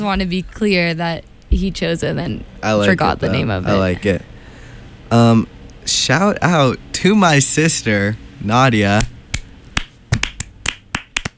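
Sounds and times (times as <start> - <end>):
speech: 0.0 - 4.3, 5.1 - 9.1
sparse handclaps in a podcast studio: 9.0 - 11.3.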